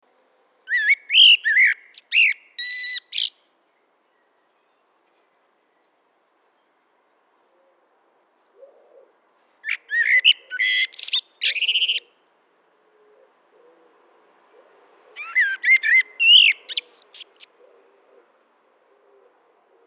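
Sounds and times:
Eurasian blackbird singing: 0.1 - 3.4, 9.6 - 12.1, 15.2 - 17.6.

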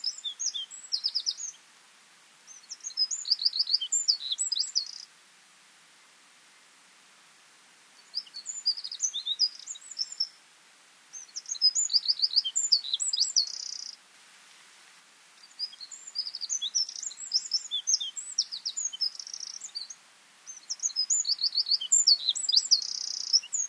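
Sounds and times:
Eurasian wren Troglodytes troglodytes singing: 0.0 - 1.6, 2.5 - 5.1, 8.0 - 10.4, 11.1 - 14.0, 15.4 - 23.6.

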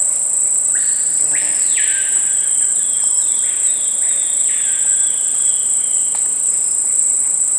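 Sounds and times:
continuous high-pitched steady tone: 0.0 - 7.2
background hiss: 0.0 - 7.5
bird calling clear whistled notes: 0.7 - 5.9.

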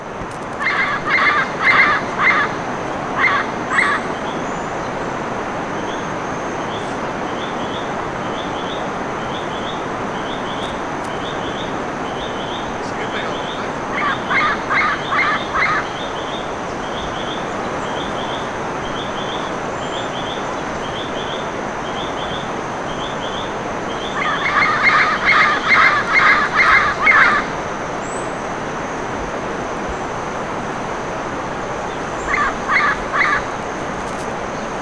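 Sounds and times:
steady hiss: 0.0 - 34.8
bird honking calls: 0.6 - 4.2, 9.4 - 19.5, 23.0 - 27.6, 32.2 - 33.5.

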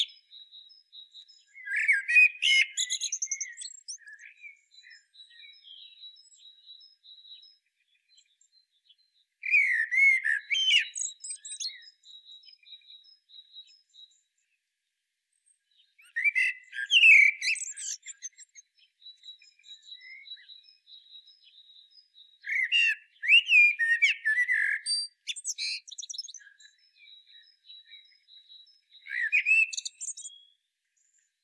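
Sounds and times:
common blackbird song phrase: 0.0 - 31.4.

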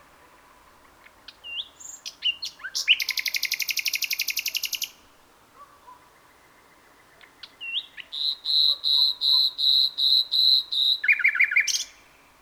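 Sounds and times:
common nightingale Luscinia megarhynchos song of rapid chirps and trills: 0.8 - 5.0, 7.2 - 12.2.

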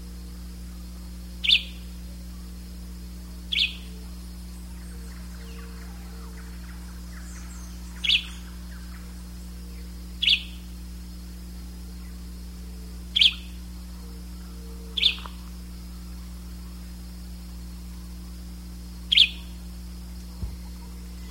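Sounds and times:
steady low hum: 0.0 - 21.3
bird chirps: 1.4 - 2.0, 3.5 - 10.8, 11.9 - 16.8, 19.1 - 19.6, 20.3 - 21.3.

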